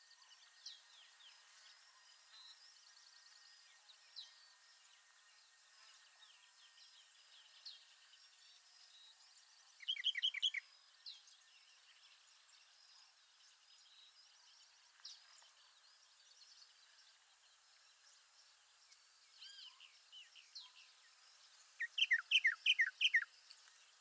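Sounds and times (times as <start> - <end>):
Northern Mockingbird Mimus polyglottos: 21.8 - 23.2.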